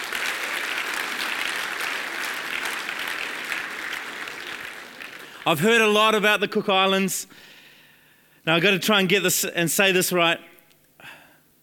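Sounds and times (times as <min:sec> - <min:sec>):
audience applause for a Tuvaluan performing group at a Pacific Island night: 0:00.0 - 0:05.9
speech: 0:05.5 - 0:07.5, 0:08.4 - 0:10.5.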